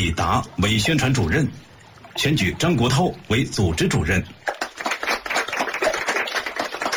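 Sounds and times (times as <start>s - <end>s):
speech: 0.0s - 4.6s
soft applause from a group: 4.5s - 6.9s.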